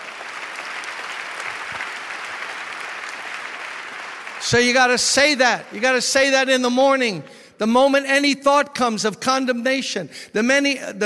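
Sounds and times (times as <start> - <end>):
audience clapping hands: 0.0 - 6.8
speech: 4.4 - 11.0.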